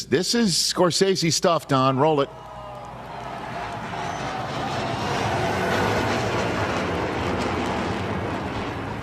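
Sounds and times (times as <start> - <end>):
speech: 0.1 - 2.5
B2 bomber flying: 3.4 - 9.0.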